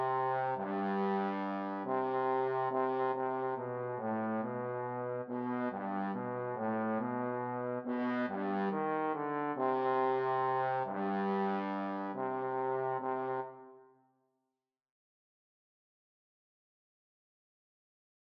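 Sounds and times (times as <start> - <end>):
trombone duet: 0.0 - 13.7.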